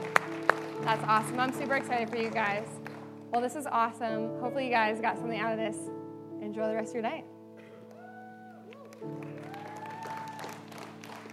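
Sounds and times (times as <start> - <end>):
audience applause: 0.0 - 3.3, 7.8 - 11.3
speech: 0.8 - 7.3.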